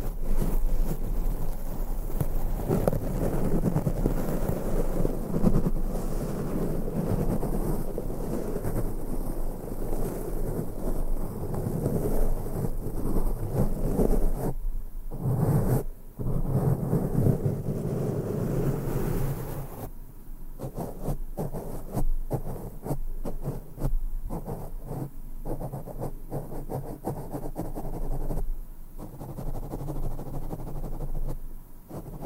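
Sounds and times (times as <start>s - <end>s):
brushing and rubbing against a microphone: 0.0s - 19.9s, 20.6s - 32.2s.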